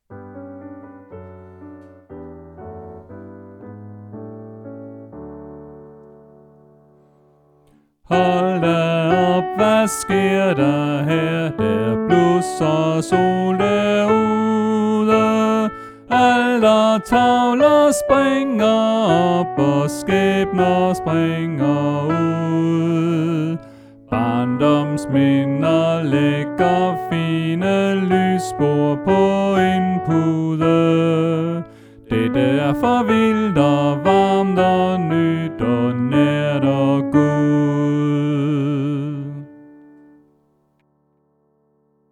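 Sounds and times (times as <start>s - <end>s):
soprano voice: 8.1s - 39.7s.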